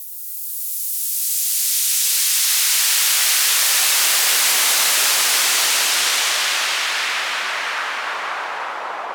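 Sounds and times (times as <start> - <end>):
waterfall: 1.9 - 9.0.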